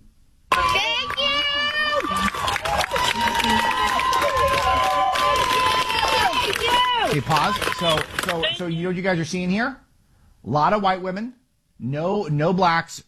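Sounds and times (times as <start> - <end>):
female protesters applauding and cheering: 0.5 - 8.7
speech: 7.2 - 9.8, 10.4 - 13.0.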